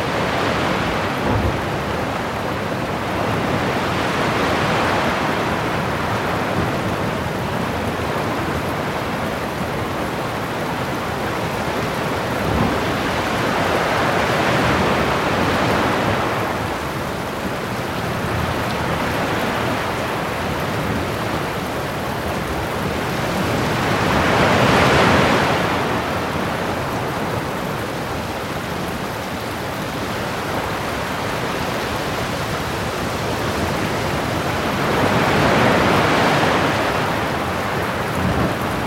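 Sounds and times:
rain: 0.0 - 38.8
thunderstorms: 1.1 - 2.1.

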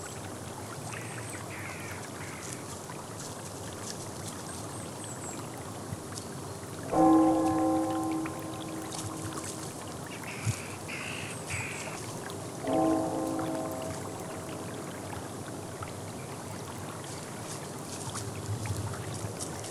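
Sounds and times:
rain: 0.0 - 19.7
bell ringing: 7.0 - 10.1, 12.7 - 15.7.

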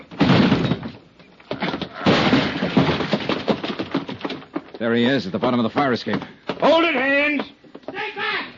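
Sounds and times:
door being forced open: 0.1 - 4.7
speech: 4.8 - 8.3.

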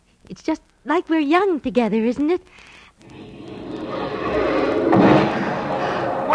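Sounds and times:
speech: 0.3 - 3.2
fireworks booming: 3.0 - 6.3.

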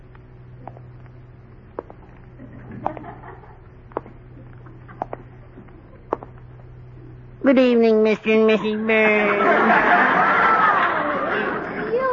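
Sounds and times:
low hum: 0.0 - 12.1
footsteps: 1.8 - 3.1, 3.9 - 6.4
laughter: 2.6 - 3.6, 8.2 - 12.1
speech: 7.5 - 10.2.

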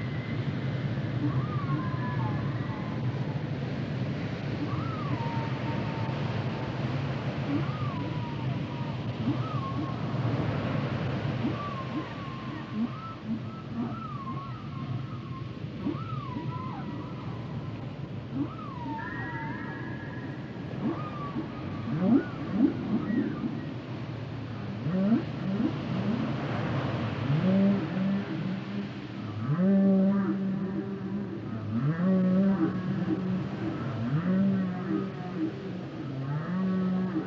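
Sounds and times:
whale song: 0.0 - 37.2.

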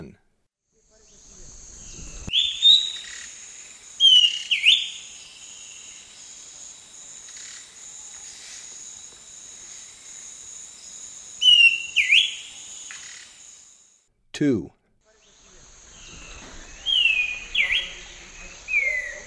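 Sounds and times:
Várzea schiffornis whistled song in South American eastern lowlands: 1.9 - 6.4, 11.0 - 13.3, 16.0 - 19.2.

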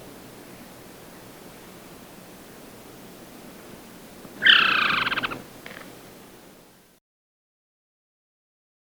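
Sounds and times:
Masked Trogon calling in Ecuador: 0.0 - 6.8.

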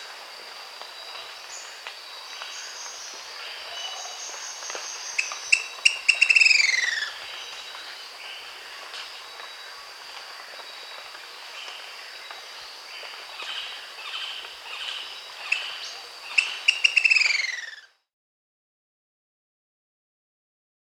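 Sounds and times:
Long-crested Pygmy-Tyrant Lophotriccus eulophotes calling in Bolivia: 3.6 - 7.5, 13.6 - 17.9.

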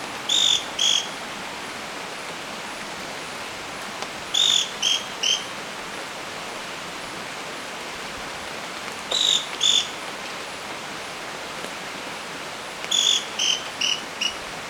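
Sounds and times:
Scale-crested Pygmy-Tyrant calling in South America: 0.3 - 1.3, 4.3 - 5.5, 9.1 - 9.9, 12.9 - 14.4.

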